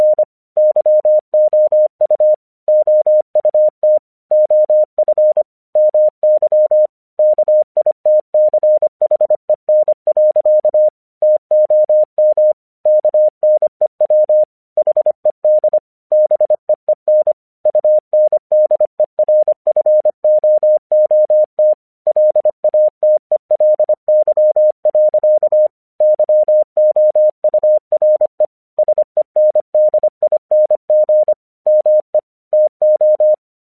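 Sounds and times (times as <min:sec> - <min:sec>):
English Morse code at 25 words per minute: 0:00.0 - 0:33.4.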